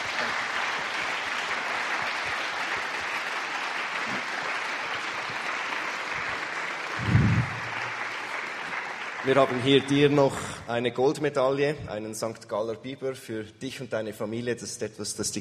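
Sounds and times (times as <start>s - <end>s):
audience applause: 0.0s - 10.4s
speech: 9.3s - 15.3s.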